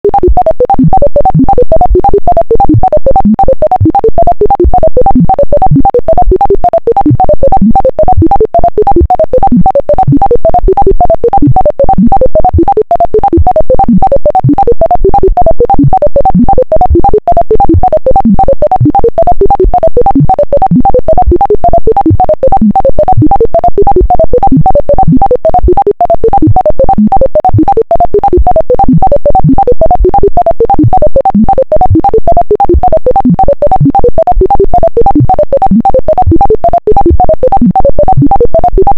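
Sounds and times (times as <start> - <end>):
electronic bleep bloops: 0.1 - 38.9.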